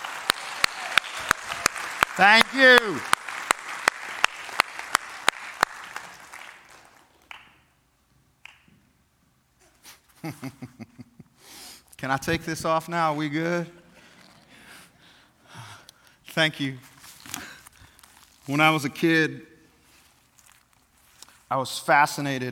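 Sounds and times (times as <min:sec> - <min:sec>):
audience applause: 0:00.0 - 0:07.6
speech: 0:02.2 - 0:03.2, 0:10.2 - 0:10.9, 0:12.0 - 0:13.8, 0:16.4 - 0:16.9, 0:18.5 - 0:19.5, 0:21.5 - 0:22.5.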